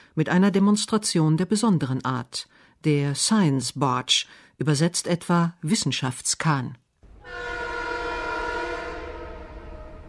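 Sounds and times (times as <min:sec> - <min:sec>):
speech: 0:00.2 - 0:07.4
low rumbling rail noise: 0:07.0 - 0:10.0
train horn blast at a railway station: 0:07.0 - 0:10.0.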